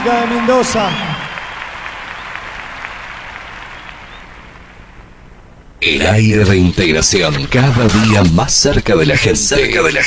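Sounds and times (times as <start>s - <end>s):
speech: 0.0s - 1.1s, 5.8s - 10.0s
applause: 0.0s - 5.2s.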